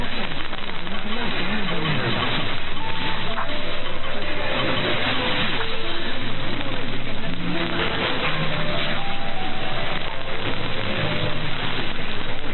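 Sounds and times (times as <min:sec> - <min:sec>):
Nacional Radio Argentina station ID time pips: 0:00.2 - 0:12.4.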